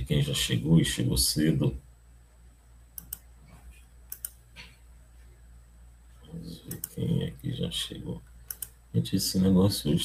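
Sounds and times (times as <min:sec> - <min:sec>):
low hum: 0:00.0 - 0:10.0
speech: 0:00.1 - 0:01.8, 0:07.6 - 0:08.3, 0:08.9 - 0:10.0
computer mouse double-clicks: 0:03.0 - 0:03.3, 0:04.1 - 0:04.7, 0:06.7 - 0:07.0, 0:08.4 - 0:08.8.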